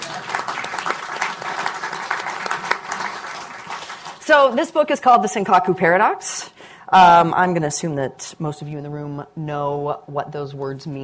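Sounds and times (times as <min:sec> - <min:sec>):
audience applause: 0:00.0 - 0:04.2
speech: 0:04.3 - 0:11.0.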